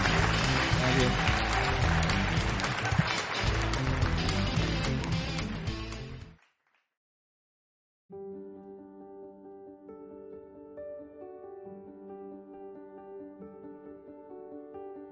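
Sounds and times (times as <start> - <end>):
audience applause for a speaker: 0.0 - 6.7.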